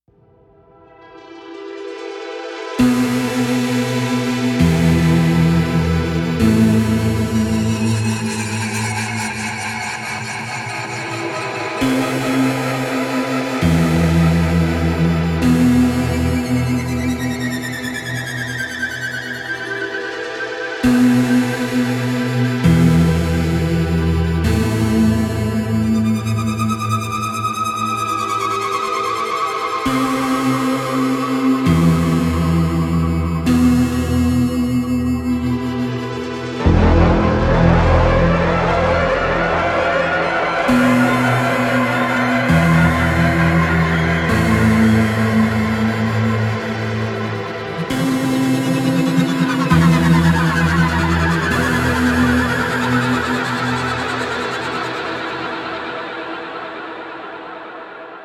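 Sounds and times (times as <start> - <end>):
electronic music: 1.1 - 58.2.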